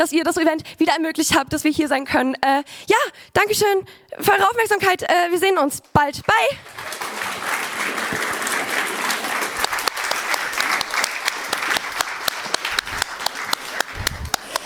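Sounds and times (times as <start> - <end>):
speech: 0.0 - 7.3
audience clapping: 6.2 - 14.6.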